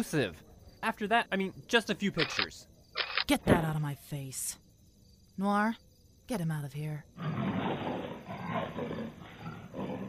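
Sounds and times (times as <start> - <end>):
speech: 0.0 - 2.7, 3.3 - 4.6, 5.4 - 7.5, 8.8 - 9.3
big cat roaring: 7.2 - 10.0.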